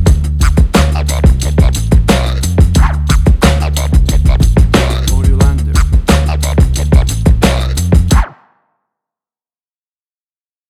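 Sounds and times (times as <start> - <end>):
1990s hip hop music: 0.0 - 8.3.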